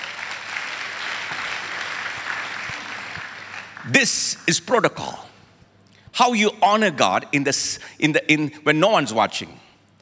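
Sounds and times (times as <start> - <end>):
audience clapping: 0.0 - 4.5
speech: 3.8 - 5.3, 6.2 - 9.6.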